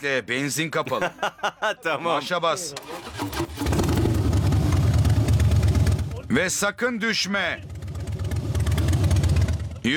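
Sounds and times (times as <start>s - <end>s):
speech: 0.0s - 3.6s, 6.3s - 7.7s
laughter: 0.8s - 3.1s
motorcycle engine running: 3.5s - 6.3s, 7.6s - 9.9s.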